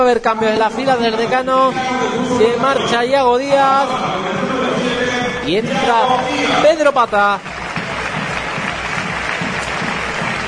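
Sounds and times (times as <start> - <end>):
speech: 0.0 - 7.6
stadium crowd applause: 5.6 - 10.4.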